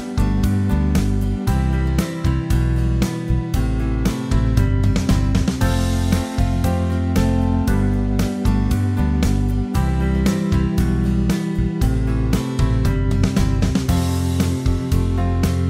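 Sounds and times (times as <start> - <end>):
guitar backing track: 0.0 - 15.6.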